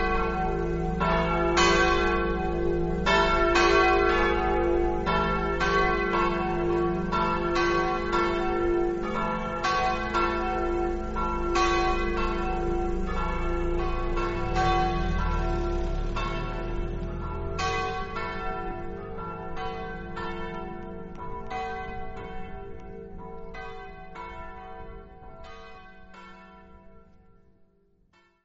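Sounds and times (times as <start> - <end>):
bells in Ipplis: 0.0 - 28.4.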